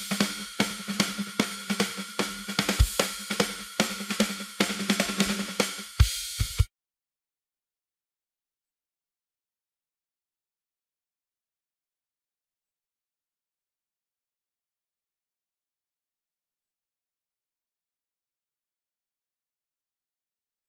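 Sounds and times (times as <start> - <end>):
drums: 0.0 - 6.7.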